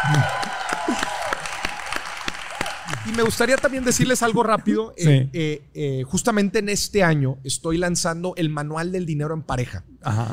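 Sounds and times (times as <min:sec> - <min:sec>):
audience applause for a talk show guest: 0:00.0 - 0:04.3
speech: 0:00.1 - 0:00.5, 0:03.1 - 0:10.3.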